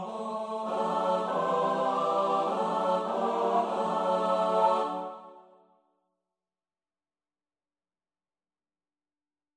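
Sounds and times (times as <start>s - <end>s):
SATB choir singing responses: 0.0s - 5.6s.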